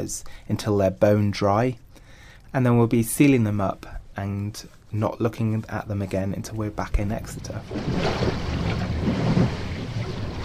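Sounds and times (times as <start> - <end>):
speech: 0.0 - 1.8, 2.5 - 8.9
wind and water rushing around a sailboat at sea heading into Portland Harbour: 7.1 - 10.4.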